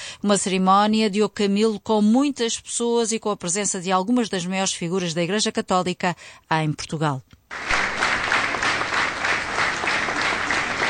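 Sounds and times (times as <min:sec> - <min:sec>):
speech: 0:00.2 - 0:07.7
loud applause from a large crowd at a funeral in Setúbal: 0:07.5 - 0:10.8.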